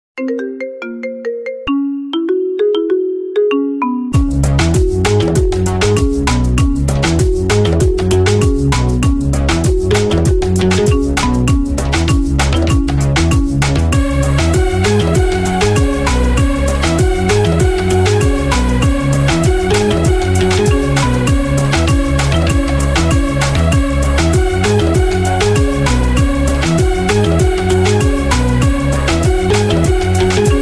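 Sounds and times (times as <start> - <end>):
marimba ringtone: 0.2 - 30.6.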